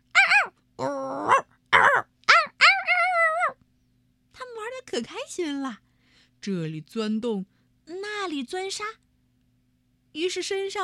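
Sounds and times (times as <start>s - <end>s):
dogs barking: 0.1s - 0.5s, 1.2s - 3.6s
speech: 5.0s - 5.8s, 6.4s - 7.6s, 8.3s - 9.0s, 10.1s - 10.8s.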